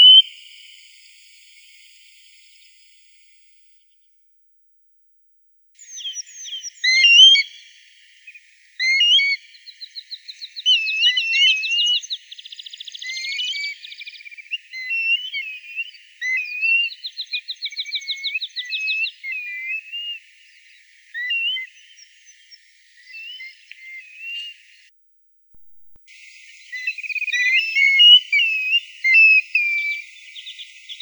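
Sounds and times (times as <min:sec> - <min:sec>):
grey plover calling: 0:05.9 - 0:07.5, 0:08.8 - 0:09.4, 0:10.5 - 0:12.1, 0:13.0 - 0:20.2, 0:21.1 - 0:21.9, 0:26.7 - 0:30.1.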